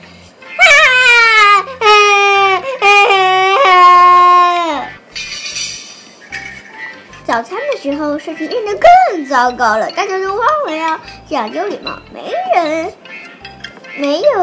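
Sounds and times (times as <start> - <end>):
baby bear crying loudly on mother bear's back: 0.6 - 4.9
speech: 7.8 - 13.0, 14.0 - 14.4.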